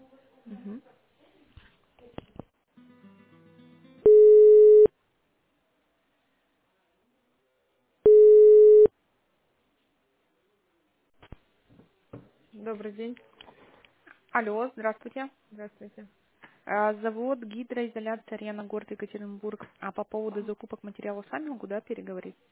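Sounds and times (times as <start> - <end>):
speech: 0.6 - 1.0, 12.6 - 13.3, 14.3 - 22.5
telephone ringback tone while a business call is being transferred: 4.0 - 4.9, 8.1 - 8.9.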